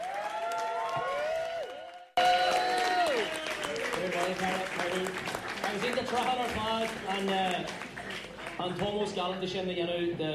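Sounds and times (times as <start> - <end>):
audience applause: 0.0 - 9.3
speech: 1.0 - 1.2, 4.3 - 7.9, 8.6 - 10.3.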